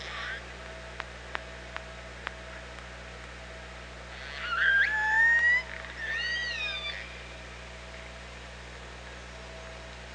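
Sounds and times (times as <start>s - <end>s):
orca calls: 0.0s - 0.4s, 4.1s - 7.3s
faint steady hum: 0.0s - 10.1s.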